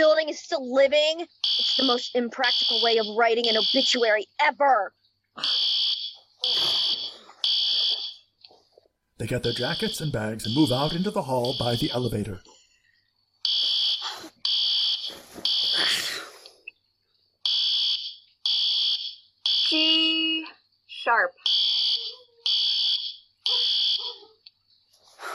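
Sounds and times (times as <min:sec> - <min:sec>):
speech: 0:00.0 - 0:05.6, 0:06.4 - 0:06.8, 0:09.2 - 0:12.5
building fire alarm blaring in a drill: 0:01.4 - 0:04.2, 0:05.4 - 0:08.3, 0:09.2 - 0:12.4, 0:13.4 - 0:16.0, 0:17.4 - 0:24.2.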